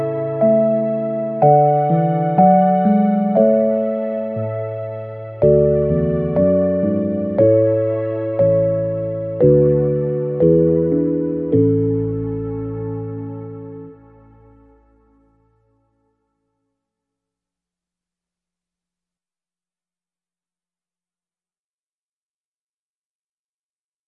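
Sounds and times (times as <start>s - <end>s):
nursery rhyme accompaniment: 0.0s - 14.6s.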